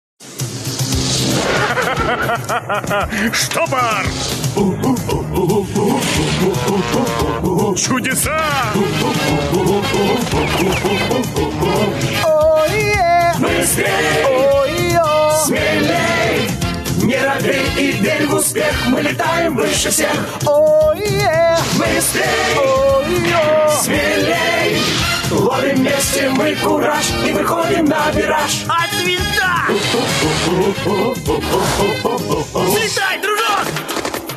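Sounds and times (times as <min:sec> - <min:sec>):
theme song: 0:00.2 - 0:34.3
laughter: 0:01.4 - 0:07.1, 0:08.7 - 0:12.0, 0:29.6 - 0:33.0.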